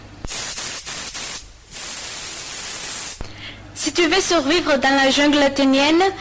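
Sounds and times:
insect repellent sprayed from an aerosol can at a mosquito: 0.3s - 3.2s
speech: 3.8s - 6.1s.

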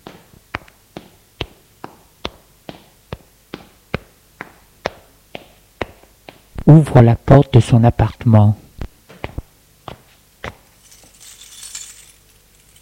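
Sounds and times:
footsteps climbing stairs: 0.0s - 6.7s
speech: 6.7s - 8.6s.

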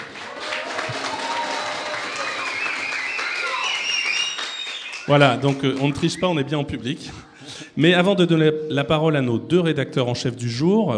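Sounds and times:
live audience clapping and making noise: 0.0s - 6.4s
speech: 5.1s - 10.9s.

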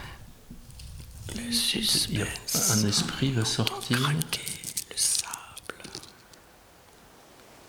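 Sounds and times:
speech: 1.5s - 4.5s
small bottle's cap unscrewing: 2.2s - 6.2s.

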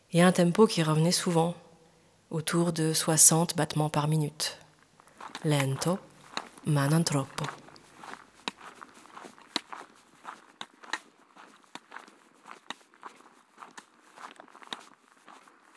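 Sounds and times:
speech: 0.1s - 1.6s, 2.3s - 4.6s, 5.4s - 7.6s
slow walking footsteps: 4.7s - 15.7s.

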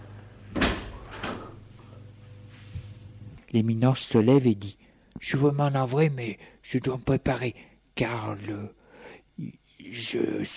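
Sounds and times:
door closing: 0.5s - 1.6s
speech: 3.5s - 8.8s, 9.4s - 10.5s.

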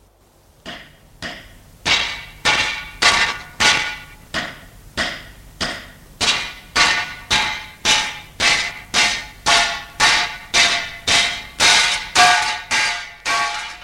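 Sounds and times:
iron bar smashing a door lock: 0.7s - 13.8s.

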